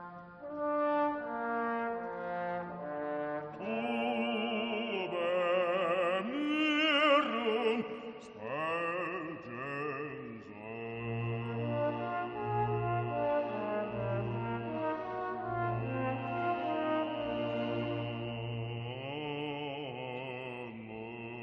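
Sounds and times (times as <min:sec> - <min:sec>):
choral requiem with orchestra: 0:00.4 - 0:21.4.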